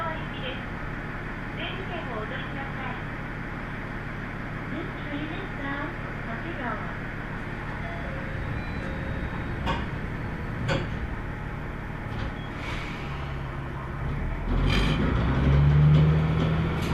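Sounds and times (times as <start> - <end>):
Tenryu Hamanako Railway train ride hum: 0.0 - 16.9.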